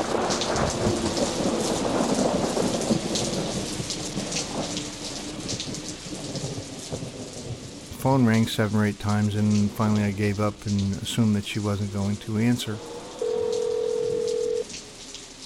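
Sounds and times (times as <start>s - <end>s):
low thunder rumbling: 0.0s - 11.1s, 12.7s - 14.6s
heavy rain: 0.0s - 15.4s
speech: 8.0s - 12.9s.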